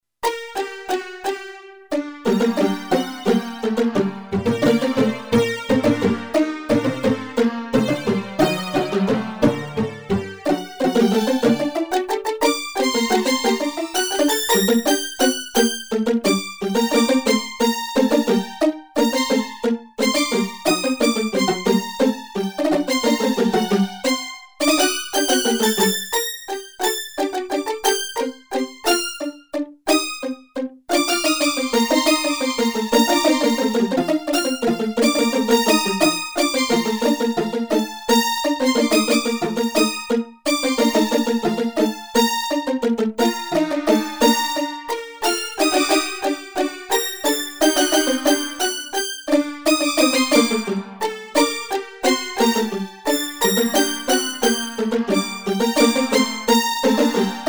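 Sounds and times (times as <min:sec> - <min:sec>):
strings: 0:00.2 - 0:57.4.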